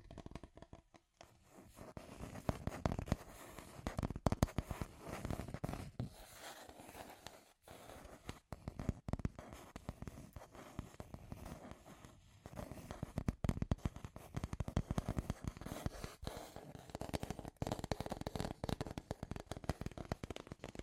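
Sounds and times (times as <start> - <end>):
scratchy tapping: 0.0 - 20.8.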